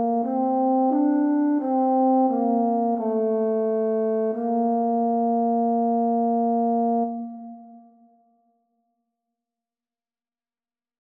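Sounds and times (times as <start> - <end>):
horn: 0.0 - 7.8.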